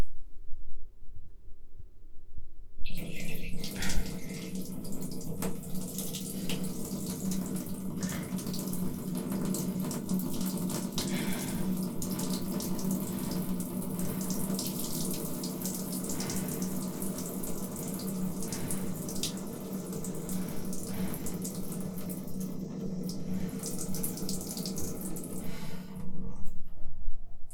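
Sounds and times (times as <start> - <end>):
person urinating in a squat toilet pose: 2.9 - 26.6.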